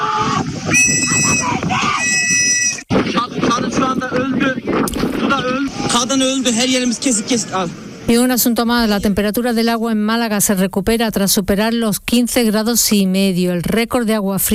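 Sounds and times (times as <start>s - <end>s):
voices shouting: 0.0s - 2.8s, 5.2s - 8.0s
wind and engine noise: 0.0s - 9.6s
woman screaming from side of sinking ship: 1.0s - 2.3s
speech: 6.2s - 14.5s.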